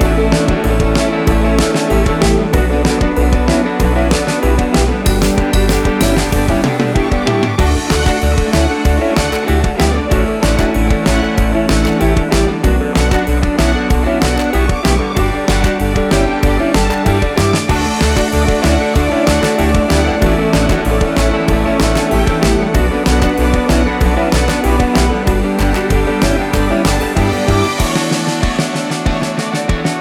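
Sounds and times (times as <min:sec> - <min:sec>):
motivational corporate music: 0:00.0 - 0:29.9.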